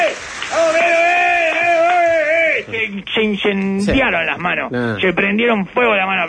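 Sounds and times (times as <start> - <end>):
audience applause: 0.0 - 3.0
speech: 2.9 - 6.2.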